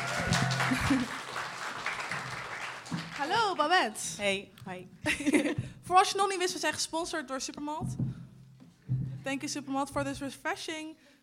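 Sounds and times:
laughter: 0.0 - 1.5, 5.1 - 5.6
audience applause: 0.0 - 3.8
speech: 0.7 - 1.2, 3.2 - 8.1, 9.2 - 11.1.

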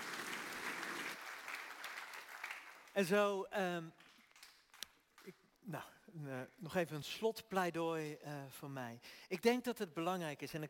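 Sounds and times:
audience applauding three participants at a talk: 0.0 - 3.0
speech: 3.0 - 4.0, 5.2 - 10.6.

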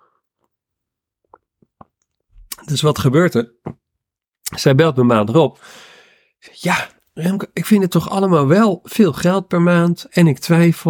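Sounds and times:
person taking a sip of water: 1.2 - 2.6
speech: 2.6 - 3.8, 4.6 - 10.8.

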